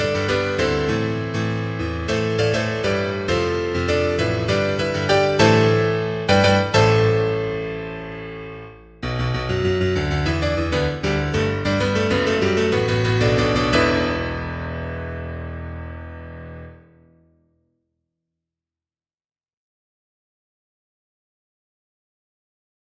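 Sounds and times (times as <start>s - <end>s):
horror story piano ending: 0.0s - 17.4s.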